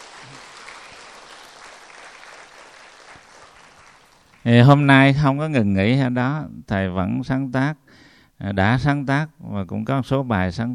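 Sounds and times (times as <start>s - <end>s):
audience applause: 0.0s - 4.4s
speech: 4.4s - 10.7s.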